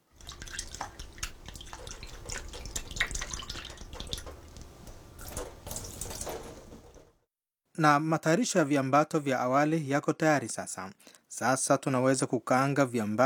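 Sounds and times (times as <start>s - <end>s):
tap water running over dried raisins: 0.0s - 7.1s
speech: 7.8s - 13.2s.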